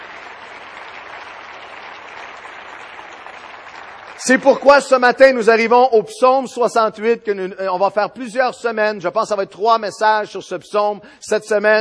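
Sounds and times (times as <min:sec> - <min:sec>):
church congregation clapping in applause: 0:00.0 - 0:05.9
speech: 0:04.2 - 0:11.7.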